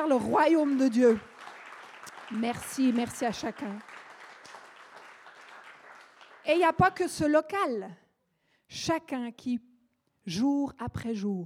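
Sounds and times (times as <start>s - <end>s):
speech: 0.0s - 1.3s, 2.3s - 3.9s, 6.4s - 8.0s, 8.7s - 9.7s, 10.3s - 11.4s
audience applause: 0.0s - 6.6s.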